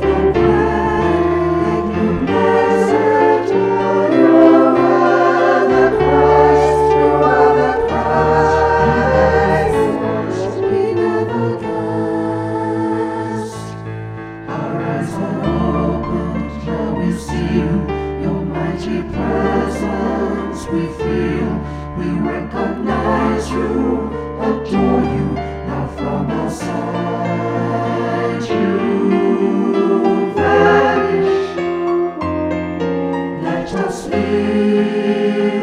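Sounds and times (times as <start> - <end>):
French horn: 0.0 - 35.6
SATB choir singing: 0.0 - 35.6
piano: 0.0 - 35.6.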